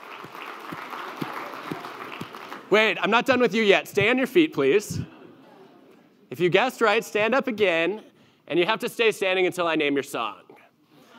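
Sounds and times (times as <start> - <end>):
crowd applauding: 0.0 - 3.4
speech: 2.7 - 5.1, 6.4 - 10.4.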